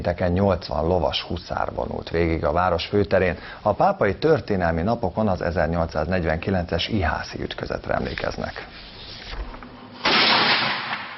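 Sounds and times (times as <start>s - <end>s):
speech: 0.0s - 8.9s
noise: 0.0s - 11.1s
cannon fire at a reenactment of the 1849 Battle of Ihász in Pápa Hungary: 10.0s - 11.1s.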